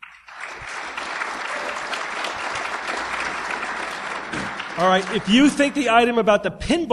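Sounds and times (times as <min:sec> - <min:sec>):
audience applause: 0:00.0 - 0:06.2
speech: 0:04.8 - 0:06.9.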